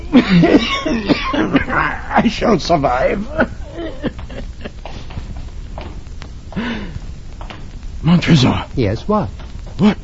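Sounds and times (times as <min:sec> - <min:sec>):
coughing: 0:00.0 - 0:05.1, 0:09.7 - 0:10.0
speech: 0:00.1 - 0:04.2, 0:08.0 - 0:10.0.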